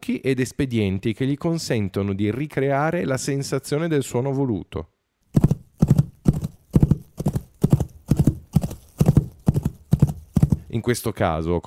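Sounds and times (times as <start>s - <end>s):
speech: 0.0s - 5.5s, 10.8s - 11.6s
coconut shells knocking against a bowl of earth: 5.4s - 10.7s.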